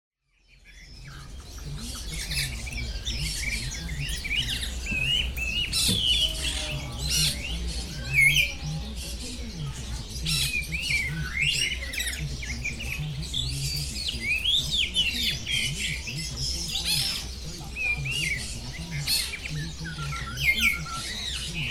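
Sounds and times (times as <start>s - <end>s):
bird warbling trilled song in a bird garden: 0.4s - 21.6s.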